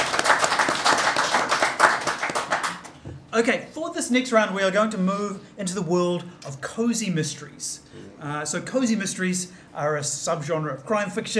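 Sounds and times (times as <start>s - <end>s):
round of applause: 0.0s - 3.0s
speech: 3.4s - 11.3s.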